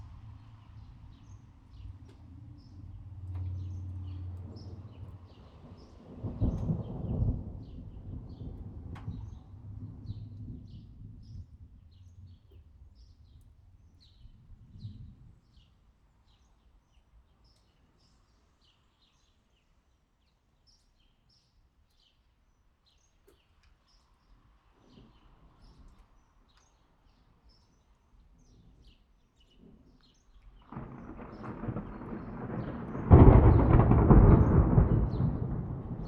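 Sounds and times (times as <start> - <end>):
thunder: 3.4 - 11.8, 30.6 - 36.0.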